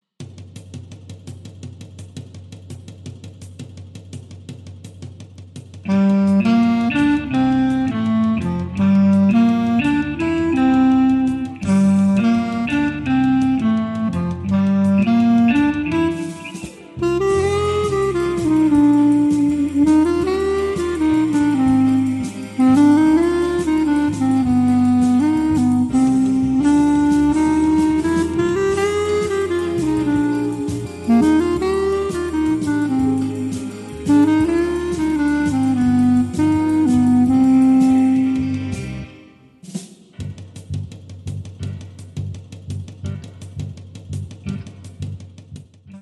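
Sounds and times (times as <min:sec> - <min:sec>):
clarinet: 0:05.9 - 0:39.6.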